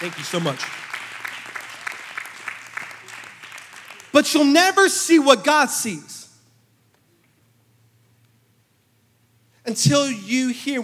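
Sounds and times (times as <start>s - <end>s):
speech: 0.0s - 0.9s, 4.2s - 6.2s, 9.7s - 10.8s
audience applause: 0.0s - 4.1s.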